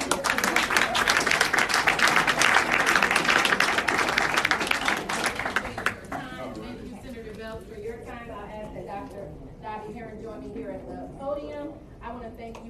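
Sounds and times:
audience applause: 0:00.0 - 0:06.4
speech: 0:12.3 - 0:12.6.

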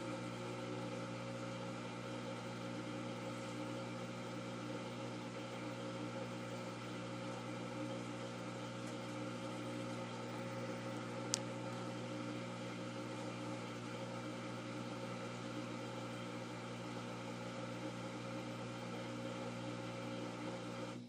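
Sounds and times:
washing machine motor humming: 0:00.0 - 0:21.0.

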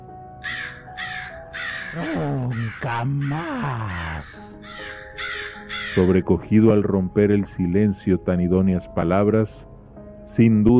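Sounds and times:
raven cawing: 0:00.4 - 0:06.3
speech: 0:02.0 - 0:04.8, 0:06.0 - 0:09.7, 0:10.4 - 0:10.7.

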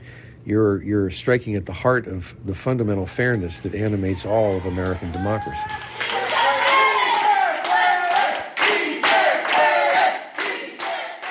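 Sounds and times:
speech: 0:00.4 - 0:06.3
crowd of immigrant activists chanting slogan in Spanish: 0:07.0 - 0:11.2.

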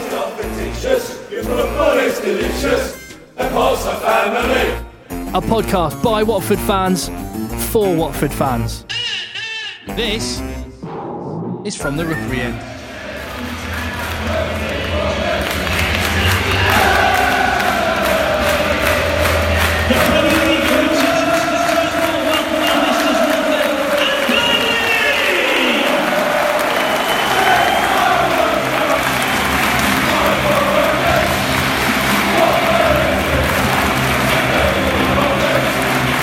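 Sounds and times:
football crowd chanting at Turf Moor: 0:00.0 - 0:05.0, 0:12.0 - 0:36.2
speech: 0:00.7 - 0:09.0, 0:09.9 - 0:10.5, 0:11.6 - 0:12.7
football crowd cheering at Turf Moor: 0:12.0 - 0:36.2.

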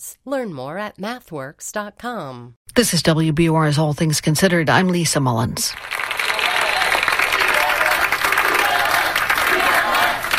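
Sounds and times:
speech: 0:00.0 - 0:06.1
faculty and staff applauding: 0:05.8 - 0:10.3
faculty and staff cheering and whooping: 0:06.2 - 0:10.3.

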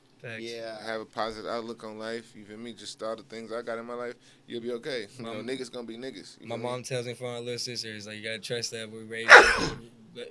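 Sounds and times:
speech: 0:00.2 - 0:10.2
person sneezing: 0:09.3 - 0:09.8.

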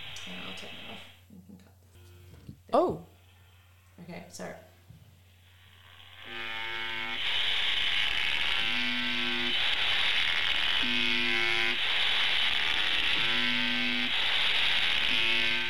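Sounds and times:
speech: 0:00.2 - 0:01.8, 0:02.7 - 0:03.1, 0:04.0 - 0:04.7
electric buzzer buzzing: 0:01.9 - 0:04.0, 0:05.3 - 0:15.6.

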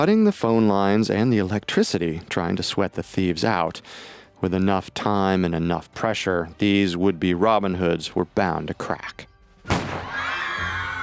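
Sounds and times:
speech: 0:00.0 - 0:10.0
gunshot fired inside a bank: 0:09.6 - 0:10.2.

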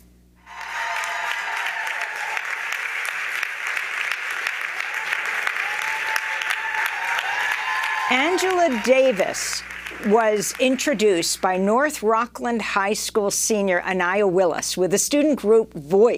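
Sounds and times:
audience applause: 0:00.5 - 0:11.4
speech: 0:08.1 - 0:16.1.

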